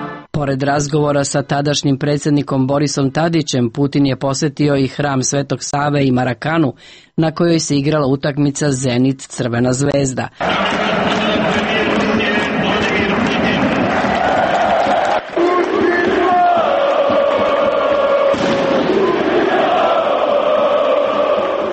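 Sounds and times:
speech: 0:00.4 - 0:11.2
large stadium crowd of football fans cheering and chanting in unison: 0:10.4 - 0:21.7.

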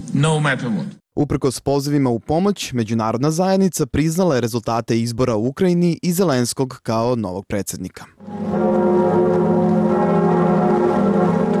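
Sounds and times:
speech: 0:00.0 - 0:09.0
cathedral church bells ringing in Paris: 0:08.2 - 0:11.5.

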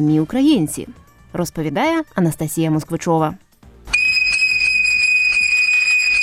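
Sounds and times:
speech: 0:00.0 - 0:03.4
Trypillian clay whistle blown: 0:04.0 - 0:06.2.

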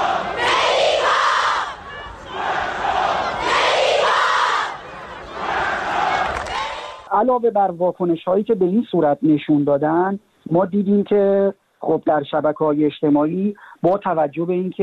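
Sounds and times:
large crowd of football fans chanting in stadium stands: 0:00.0 - 0:07.1
speech: 0:07.2 - 0:14.8.

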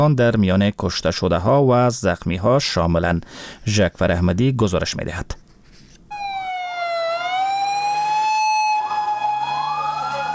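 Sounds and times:
speech: 0:00.0 - 0:05.4
ambulance sirens at a bombing scene: 0:06.1 - 0:10.3.

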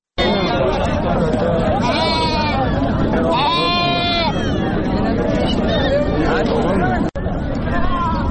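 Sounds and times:
crowd babble at a livestock market: 0:00.2 - 0:08.3
sheep bleating at a livestock market: 0:01.8 - 0:02.6, 0:03.3 - 0:04.4.

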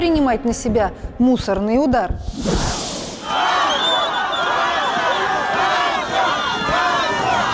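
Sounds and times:
speech: 0:00.3 - 0:02.7
protesting crowd jeering and shouting at regional governor: 0:03.2 - 0:07.5.

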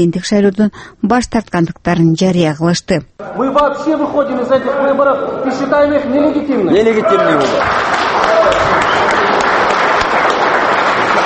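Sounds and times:
speech: 0:00.0 - 0:09.2
applause and crowd noise at a press conference after Atambayev's statement: 0:07.0 - 0:11.2.

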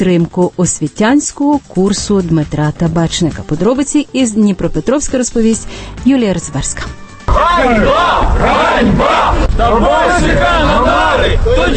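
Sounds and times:
speech: 0:00.0 - 0:11.7
crowd of protesting students chanting in unison: 0:07.3 - 0:11.7.

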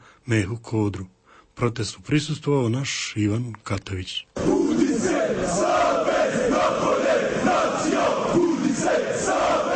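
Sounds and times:
speech: 0:00.3 - 0:05.8
football supporters chanting at a street protest in Bosnia and Herzegovina: 0:04.4 - 0:09.7.

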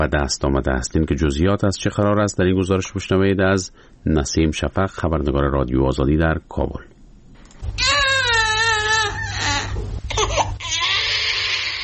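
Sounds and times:
speech: 0:00.0 - 0:06.9
newborn baby crying: 0:07.8 - 0:11.8.

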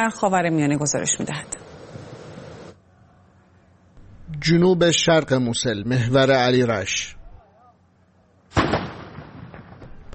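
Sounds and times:
speech: 0:00.0 - 0:01.7, 0:04.4 - 0:07.2
Iraqi army artillery fire: 0:08.5 - 0:10.1.

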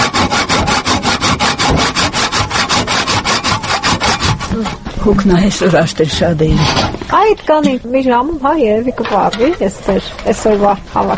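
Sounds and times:
hand saw cutting wood branches: 0:00.0 - 0:04.9
speech: 0:05.0 - 0:11.1.

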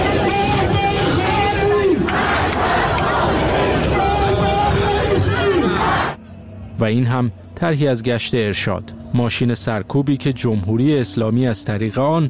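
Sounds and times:
large protest crowd chanting slogans: 0:00.0 - 0:06.2
speech: 0:06.8 - 0:12.2.

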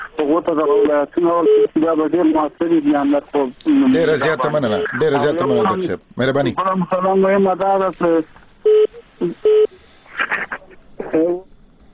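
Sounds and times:
brief talk on the telephone line: 0:00.0 - 0:09.7
speech: 0:00.2 - 0:08.4
telephone tones of a listener's call coming in to a radio call-in show: 0:01.4 - 0:01.7, 0:04.4 - 0:05.8, 0:08.6 - 0:09.7.

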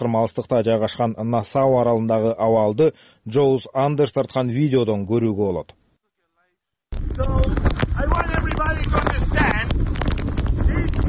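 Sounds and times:
speech: 0:00.0 - 0:05.8, 0:07.1 - 0:09.5
Hurricane Dorian winds on Nassau island in the Bahamas buffeting the microphone: 0:06.9 - 0:11.0.

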